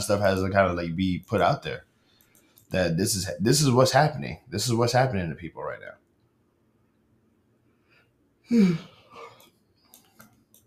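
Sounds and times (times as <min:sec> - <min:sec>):
speech: 0:00.0 - 0:01.9, 0:02.7 - 0:06.0, 0:08.5 - 0:08.9
person yawning: 0:08.4 - 0:09.4.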